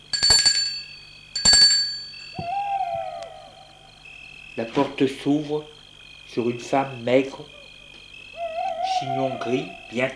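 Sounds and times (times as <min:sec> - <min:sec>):
doorbell ringing: 0:00.0 - 0:02.6
speech: 0:04.6 - 0:07.6, 0:09.0 - 0:10.1.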